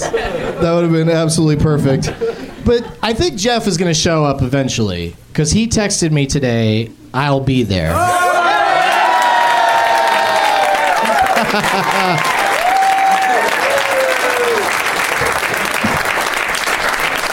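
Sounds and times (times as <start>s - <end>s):
laughter: 0.0s - 1.0s, 1.8s - 3.0s, 8.0s - 14.1s
speech: 0.0s - 8.2s, 11.5s - 12.4s
audience applause: 8.3s - 17.3s.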